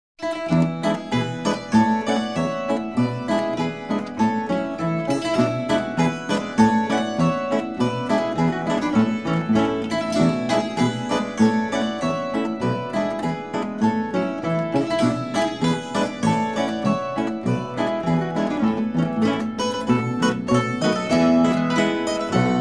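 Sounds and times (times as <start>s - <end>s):
Bavarian tavern folk dance tune: 0.2s - 22.5s.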